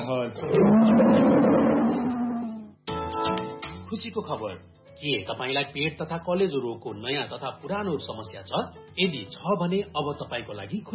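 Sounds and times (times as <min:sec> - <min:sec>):
speech: 0:00.1 - 0:02.1, 0:03.9 - 0:10.9
tiger roar in a radio station jingle: 0:00.4 - 0:02.7.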